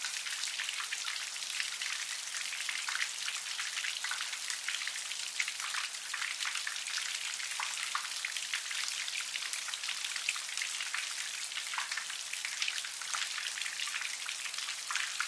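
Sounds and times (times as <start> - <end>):
rain water dripping and splattering from an awning in an alley: 0.0 - 15.2.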